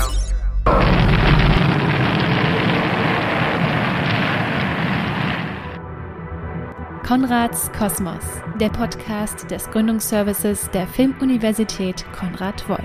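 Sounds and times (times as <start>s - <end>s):
rocket launch blast-off effect: 0.7s - 5.8s
speech: 7.1s - 12.8s.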